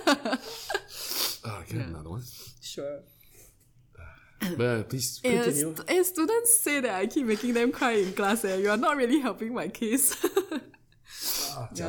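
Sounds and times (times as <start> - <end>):
speech: 0.1 - 0.8, 1.7 - 3.2, 4.0 - 11.8
nose blowing: 0.9 - 1.4.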